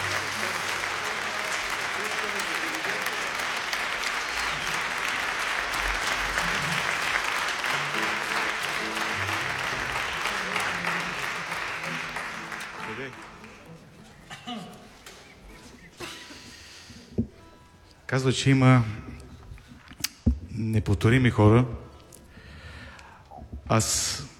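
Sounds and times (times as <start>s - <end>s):
crowd clapping in dense crackling applause: 0.0s - 14.0s
speech: 18.1s - 19.0s, 20.8s - 21.8s, 23.8s - 24.1s.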